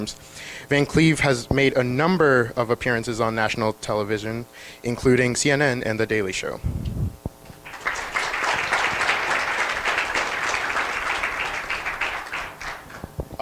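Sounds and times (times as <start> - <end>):
speech: 0.0 - 7.0
audience applause: 7.6 - 13.1.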